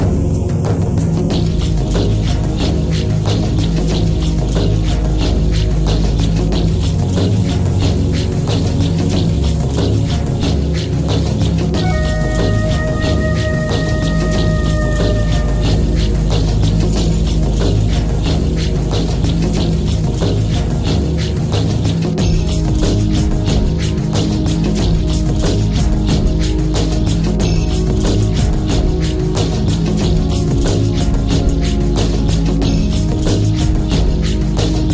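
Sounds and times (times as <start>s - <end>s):
Indian spiritual music: 0.0s - 34.9s.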